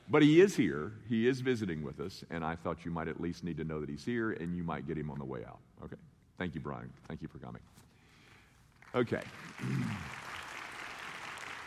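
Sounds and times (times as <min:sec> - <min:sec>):
speech: 0:00.1 - 0:07.9, 0:08.9 - 0:10.2
audience clapping: 0:08.7 - 0:11.6.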